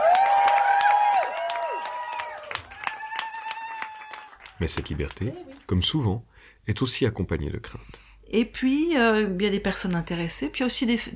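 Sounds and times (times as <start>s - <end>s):
audience applause: 0.0s - 5.7s
speech: 4.6s - 11.1s.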